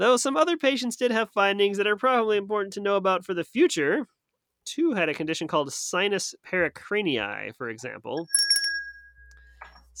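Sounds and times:
speech: 0.0s - 8.4s
bell ding flagging testable content: 8.2s - 9.6s.

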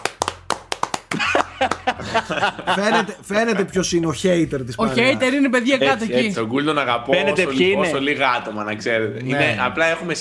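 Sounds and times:
audience clapping: 0.0s - 2.4s
laughter: 1.1s - 3.2s
speech: 1.6s - 10.2s.

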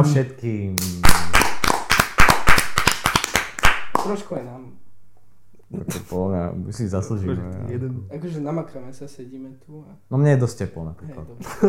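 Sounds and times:
speech: 0.0s - 1.2s, 4.0s - 4.8s, 5.7s - 11.6s
hand clapping applause: 1.0s - 4.2s.

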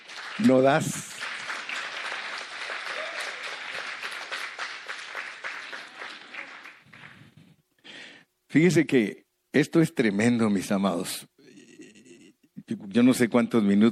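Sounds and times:
audience applauding: 0.0s - 7.5s
speech: 0.4s - 1.1s, 8.5s - 11.3s, 13.0s - 13.9s.

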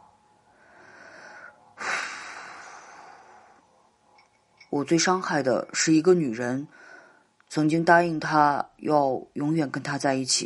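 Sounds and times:
man's deep breath in a drama scene: 0.5s - 3.7s, 6.7s - 7.3s
speech: 4.7s - 6.9s, 7.5s - 10.4s.

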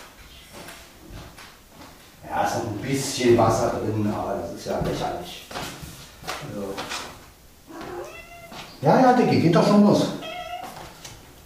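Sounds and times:
speech: 2.6s - 5.7s, 8.8s - 10.2s
cat meowing loudly: 7.7s - 8.7s, 10.1s - 10.9s.

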